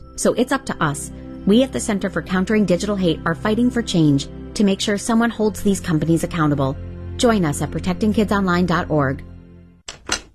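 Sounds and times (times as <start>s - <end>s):
speech: 0.2s - 9.3s
home door lock being locked: 9.9s - 10.3s.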